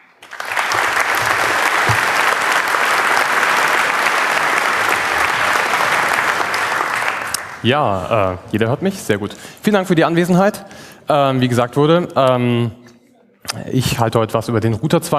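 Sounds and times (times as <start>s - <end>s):
audience applause: 0.0s - 8.2s
speech: 7.6s - 12.8s, 13.5s - 15.1s.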